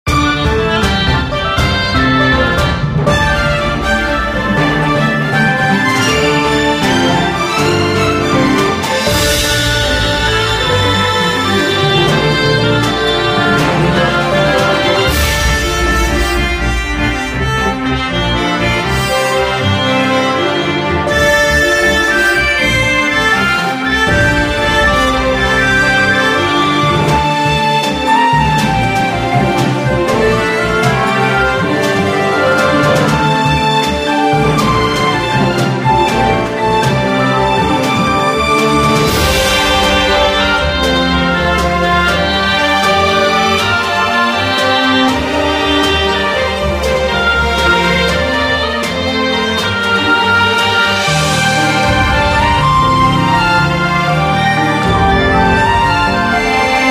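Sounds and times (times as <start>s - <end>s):
battle background music: 0.1s - 56.8s.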